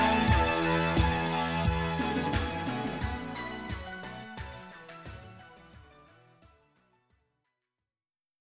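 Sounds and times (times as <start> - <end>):
retrowave music mix: 0.0 - 6.3.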